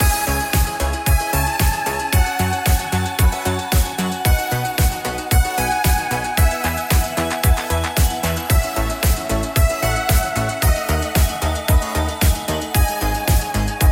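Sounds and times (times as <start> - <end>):
romantic music: 0.0 - 13.9.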